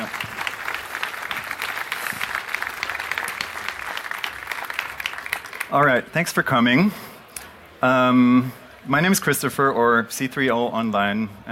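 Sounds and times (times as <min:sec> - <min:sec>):
audience applause: 0:00.0 - 0:06.1
speech: 0:05.7 - 0:07.1, 0:07.8 - 0:11.4.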